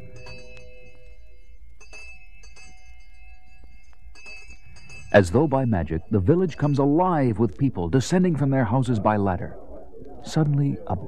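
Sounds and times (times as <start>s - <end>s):
village all-clear bell ringing: 0.0s - 8.7s
speech: 5.1s - 9.6s, 10.2s - 11.0s.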